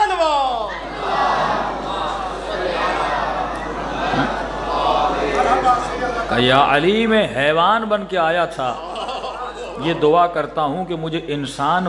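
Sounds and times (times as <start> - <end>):
large crowd shouting a slogan at a religious gathering honoring Hussain: 0.0 - 5.8
laughter: 0.7 - 6.2, 8.4 - 10.5
speech: 6.4 - 8.9, 9.8 - 11.8.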